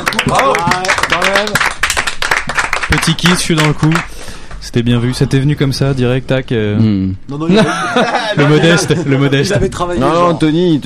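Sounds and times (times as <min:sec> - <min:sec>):
French TV studio audience clapping for a guest: 0:00.0 - 0:04.6
speech: 0:00.3 - 0:01.8, 0:02.9 - 0:10.8
laughter: 0:07.5 - 0:09.7.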